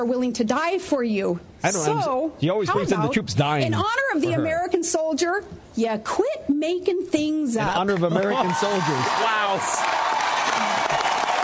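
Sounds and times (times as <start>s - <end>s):
speech: 0.0s - 10.1s
audience applause: 7.9s - 11.4s.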